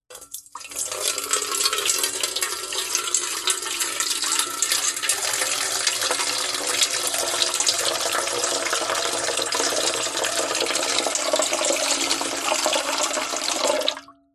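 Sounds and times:
household water pouring slowly into large metal bowl: 0.1 - 14.1.

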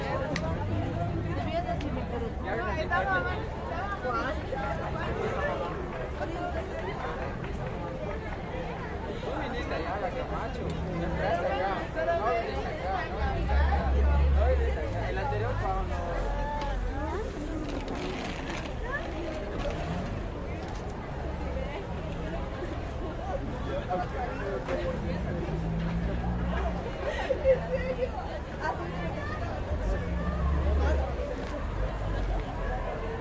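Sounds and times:
street traffic: 0.0 - 33.1
walla of people chatting: 0.0 - 33.1.

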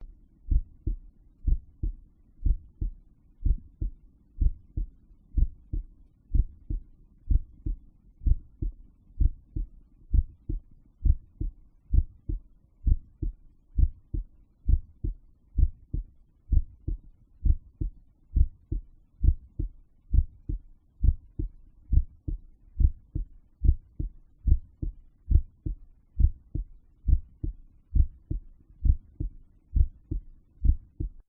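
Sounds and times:
resting heartbeat at the tricuspid: 0.0 - 31.2.

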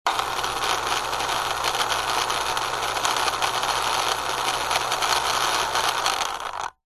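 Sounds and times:
small robot rattly tracks and wheels: 0.1 - 6.7
science fiction robot motor whirring and spinning: 0.1 - 6.8.

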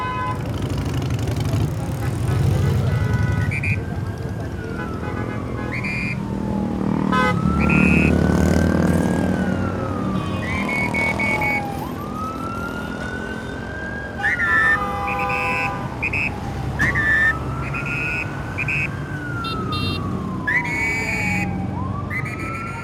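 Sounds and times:
street traffic in Mexico City: 0.0 - 22.8
police whistles in Mexico City: 3.0 - 4.1, 5.6 - 6.4, 7.2 - 8.5, 9.4 - 12.0, 13.0 - 22.8.

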